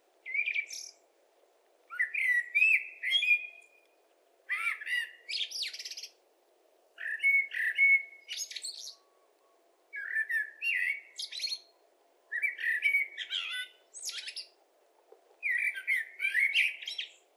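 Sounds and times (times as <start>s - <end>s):
common blackbird singing: 0.3s - 1.0s, 1.9s - 3.8s, 4.5s - 6.2s, 7.0s - 14.6s, 15.4s - 17.3s.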